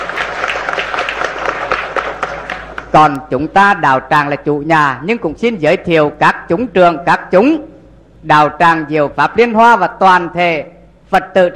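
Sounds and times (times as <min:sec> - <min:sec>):
audience applause welcoming performers at a Buddhist community course: 0:00.0 - 0:02.9
speech: 0:03.0 - 0:11.5.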